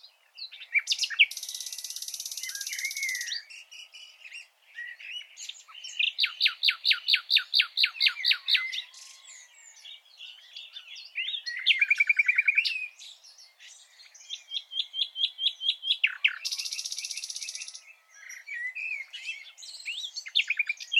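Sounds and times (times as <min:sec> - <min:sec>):
common nightingale song: 0:00.0 - 0:20.9.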